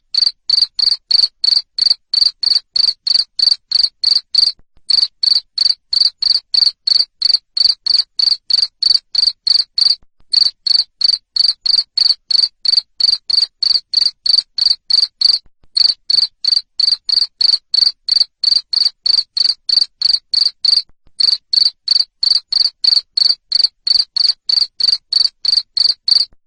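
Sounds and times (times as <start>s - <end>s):
cricket chirping: 0.1s - 26.3s.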